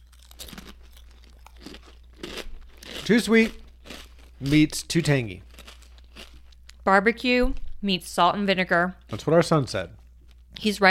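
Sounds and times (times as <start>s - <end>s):
kettle-style potato chips being chewed: 0.0s - 6.8s, 9.0s - 10.6s
speech: 3.1s - 3.6s, 4.4s - 5.5s, 6.9s - 10.0s, 10.6s - 10.8s.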